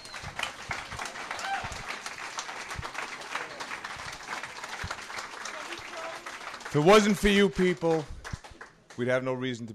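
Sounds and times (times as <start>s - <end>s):
audience applause: 0.0s - 9.2s
speech: 6.8s - 8.1s, 9.0s - 9.7s.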